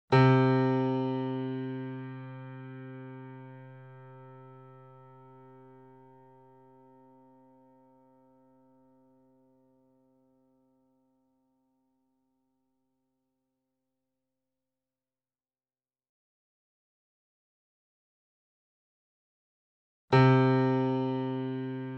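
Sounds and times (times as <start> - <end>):
sample piano: 0.1 - 11.0, 20.1 - 21.9.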